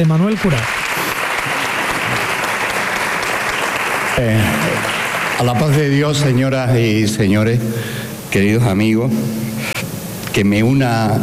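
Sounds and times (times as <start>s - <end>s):
speech: 0.0s - 0.8s, 4.2s - 9.6s, 10.4s - 11.2s
audience ovation: 0.0s - 6.0s.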